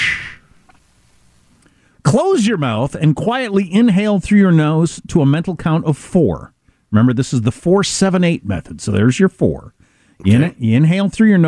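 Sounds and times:
whooshing exhale through the mouth: 0.0 - 0.5
speech: 2.1 - 11.4.

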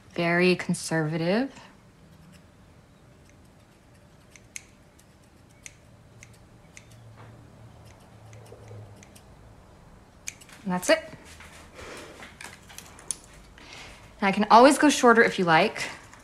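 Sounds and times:
low steady hum: 0.0 - 16.2
speech: 0.2 - 1.7, 10.7 - 11.4, 14.2 - 16.0
scissors trimming bangs: 2.1 - 2.5, 3.1 - 9.4, 10.2 - 11.0.

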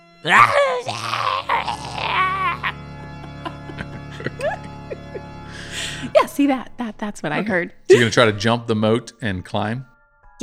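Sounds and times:
speech: 0.2 - 2.1, 6.4 - 10.4
person imitating yelling: 0.2 - 2.8
laughter: 1.6 - 6.2, 7.9 - 8.4.

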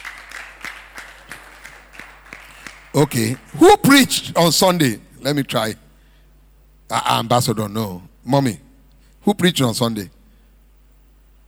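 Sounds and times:
group of people clapping: 0.0 - 4.3
speech: 3.0 - 5.8, 6.9 - 8.6, 9.2 - 10.2.

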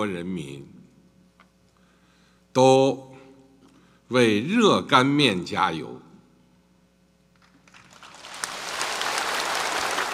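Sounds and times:
speech: 0.0 - 0.8, 2.6 - 3.1, 4.1 - 6.0
audience applause at a ceremony: 7.6 - 10.1.

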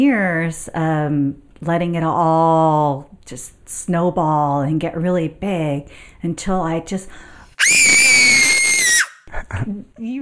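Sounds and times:
speech: 0.0 - 8.3, 9.3 - 10.1
recording of a young child about three or four years old screaming: 7.6 - 9.2.

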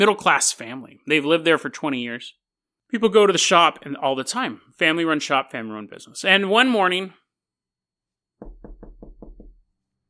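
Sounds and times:
speech: 0.0 - 7.2
knuckles knocking on the door of a family-run shop: 8.4 - 9.8.

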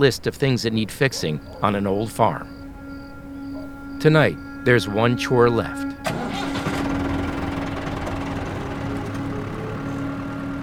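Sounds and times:
speech: 0.0 - 2.6, 4.0 - 5.9
tractor engine running: 0.0 - 10.6.

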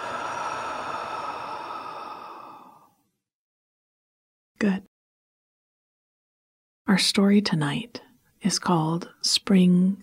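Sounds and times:
slow breath out during a guided relaxation exercise: 0.0 - 3.1
speech: 4.6 - 4.9, 6.9 - 10.0.

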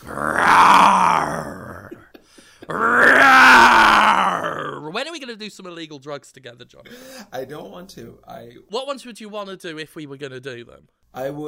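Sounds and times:
person roaring: 0.0 - 2.1, 2.7 - 4.9
person breathing: 2.2 - 2.7, 6.8 - 7.3
speech: 5.5 - 11.4.

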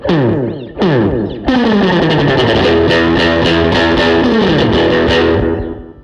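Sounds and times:
Telecaster electric guitar through a delay effect: 0.0 - 6.0.

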